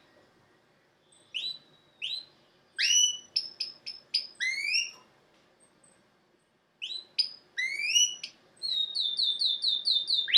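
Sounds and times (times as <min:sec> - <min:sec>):
domestic canary song: 0:01.0 - 0:05.0, 0:06.8 - 0:10.3.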